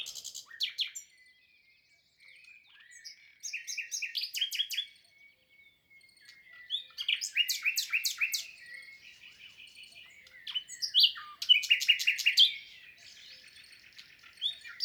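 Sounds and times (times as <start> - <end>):
common nightingale singing: 3.4 - 14.8
birds calling faintly: 3.6 - 14.8.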